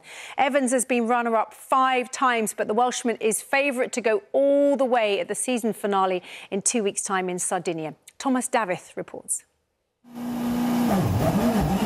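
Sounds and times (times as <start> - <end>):
speech: 0.4 - 9.5, 10.1 - 10.4
rally car engine driving around Glasgow: 10.2 - 11.8.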